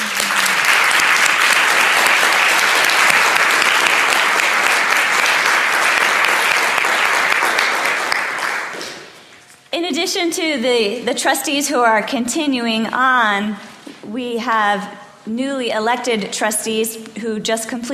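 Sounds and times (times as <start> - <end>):
large audience applause: 0.0 - 9.2
speech: 9.8 - 17.9.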